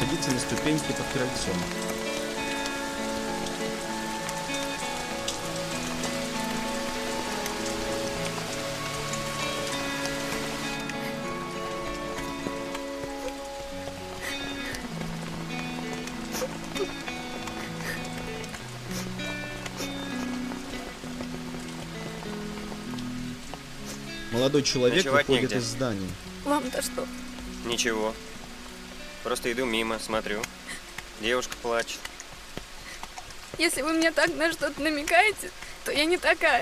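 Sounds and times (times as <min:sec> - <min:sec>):
sustained music with shifting chords: 0:00.0 - 0:29.2
steady rain pattering on a hard surface: 0:00.0 - 0:36.5
speech: 0:00.2 - 0:01.9, 0:24.5 - 0:28.3, 0:29.2 - 0:30.5, 0:31.2 - 0:32.1, 0:33.6 - 0:36.5.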